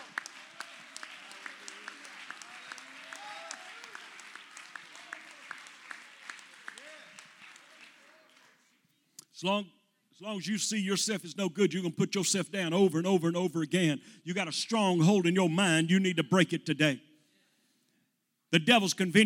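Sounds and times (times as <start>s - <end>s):
audience clapping hands: 0.0s - 8.8s
speech: 9.4s - 17.1s, 18.5s - 19.2s.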